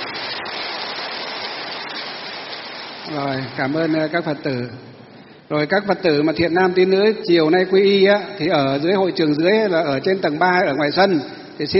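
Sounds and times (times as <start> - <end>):
loud applause: 0.0 - 3.9
speech: 3.1 - 4.9, 5.5 - 11.7.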